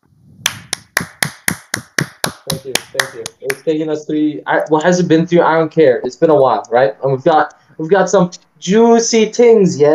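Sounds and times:
hand claps: 0.5s - 3.7s
speech: 2.6s - 9.9s.

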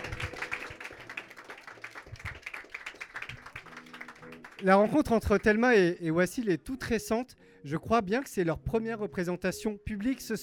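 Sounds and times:
audience applause: 0.0s - 4.9s
speech: 4.6s - 10.4s.

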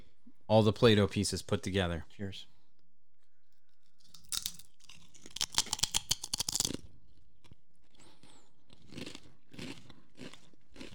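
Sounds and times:
speech: 0.5s - 2.5s
crunching crispy rice snacks: 3.8s - 10.9s.

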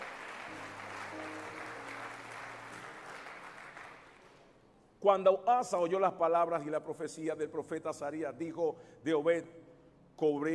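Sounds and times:
audience clapping: 0.0s - 4.6s
speech: 5.0s - 9.6s, 10.2s - 10.5s.

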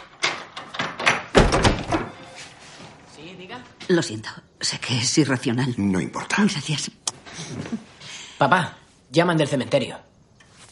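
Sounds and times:
door swinging shut: 0.0s - 2.3s
speech: 3.3s - 7.8s, 8.4s - 10.1s.

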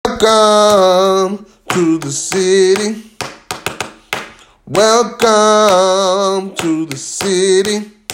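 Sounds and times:
speech: 0.2s - 3.3s, 4.7s - 8.0s
hands clapping: 1.7s - 4.4s, 5.2s - 5.9s, 6.6s - 8.1s.

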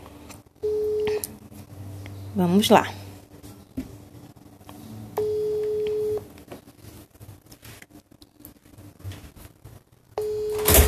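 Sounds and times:
ringback of an outgoing telephone call: 0.6s - 1.2s, 5.2s - 6.2s, 10.2s - 10.8s
speech: 2.4s - 3.0s.

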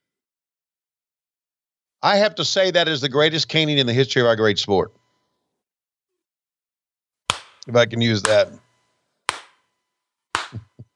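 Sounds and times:
speech: 2.0s - 5.0s, 7.7s - 8.6s
slow hand claps: 9.3s - 9.6s, 10.4s - 10.9s.

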